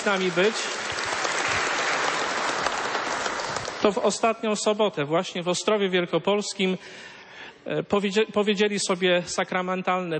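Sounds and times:
speech: 0.0s - 1.7s, 3.8s - 10.1s
congregation at a prayer gathering applauding a newlywed couple: 0.0s - 4.2s.

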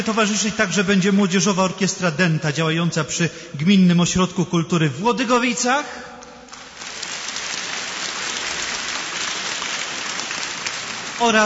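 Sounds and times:
applause: 0.0s - 1.0s, 6.5s - 11.4s
speech: 0.0s - 6.1s, 11.2s - 11.4s.

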